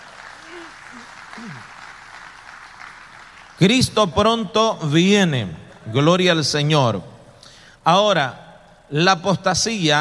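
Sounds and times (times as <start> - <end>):
audience clapping hands: 0.0 - 4.3, 5.4 - 6.6
speech: 0.5 - 1.8, 3.6 - 7.1, 7.8 - 10.0.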